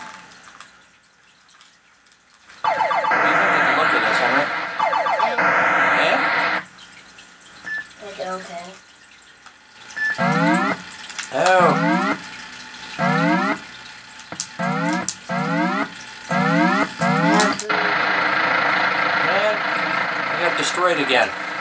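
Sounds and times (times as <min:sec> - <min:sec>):
video game explosions: 0:02.7 - 0:06.6, 0:10.2 - 0:12.2, 0:13.0 - 0:13.6, 0:14.5 - 0:21.5.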